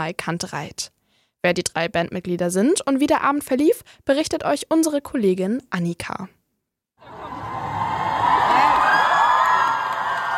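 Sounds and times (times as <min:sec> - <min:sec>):
speech: 0:00.0 - 0:06.4
concert crowd cheering a band: 0:07.0 - 0:10.3.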